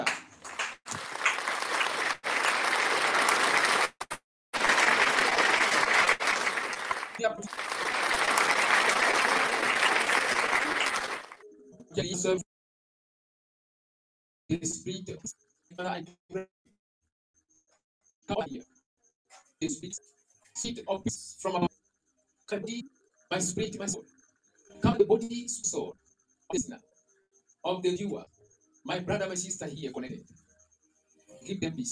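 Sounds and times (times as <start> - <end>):
audience applauding: 0.0 - 11.4
speech: 12.0 - 12.4, 14.5 - 16.5, 19.6 - 21.7, 22.5 - 24.2, 24.8 - 26.9, 27.6 - 30.4, 31.4 - 31.9.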